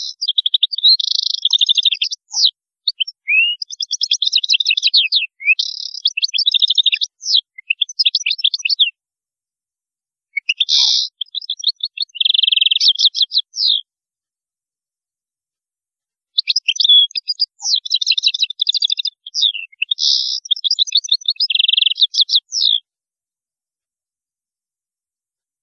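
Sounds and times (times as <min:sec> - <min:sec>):
European goldfinch song twittering: 0:00.0 - 0:08.9, 0:10.4 - 0:13.8, 0:16.4 - 0:22.8.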